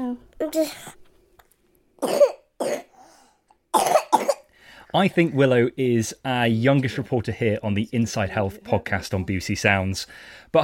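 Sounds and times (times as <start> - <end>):
speech: 0.1 - 1.0, 2.0 - 2.3, 4.9 - 10.6
young child coughing: 2.0 - 3.0, 3.7 - 4.5.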